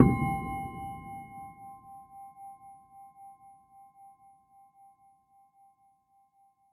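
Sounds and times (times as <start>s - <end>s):
flea market debris percussion: 0.0s - 1.4s.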